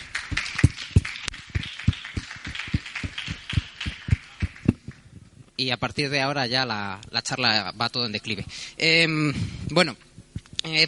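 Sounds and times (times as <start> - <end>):
audience applause: 0.0 - 4.8
speech: 5.6 - 10.8.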